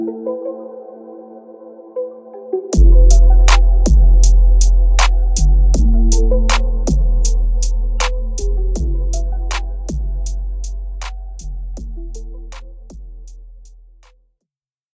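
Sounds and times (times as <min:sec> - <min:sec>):
screwed low bass at 41 44 and 46 Hz: 0:02.8 - 0:14.0.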